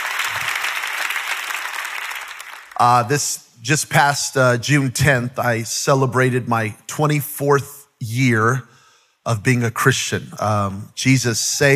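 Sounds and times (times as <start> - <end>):
audience clapping for worship team: 0.0 - 3.2
speech: 2.8 - 11.7.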